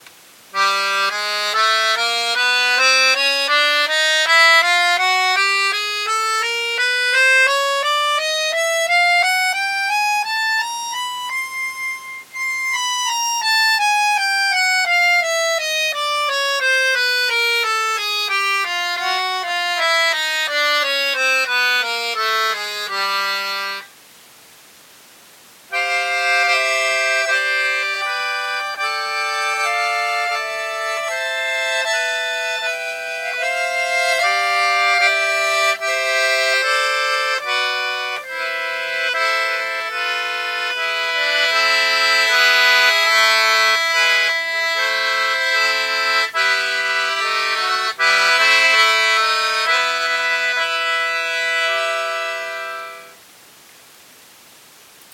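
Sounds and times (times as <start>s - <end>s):
VICTORIA free-bass accordion: 0.0s - 24.0s, 25.7s - 53.2s.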